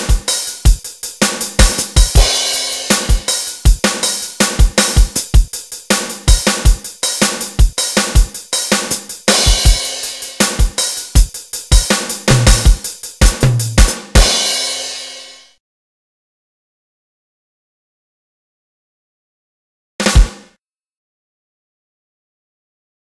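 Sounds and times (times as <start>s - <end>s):
snare drum break: 0.0s - 15.4s, 20.0s - 20.6s.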